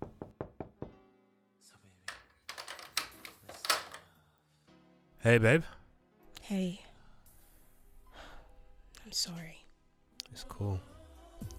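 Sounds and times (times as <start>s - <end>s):
knock on the door: 0.0s - 1.0s
speech: 5.2s - 5.8s, 6.5s - 6.8s, 9.1s - 9.6s, 10.3s - 10.9s.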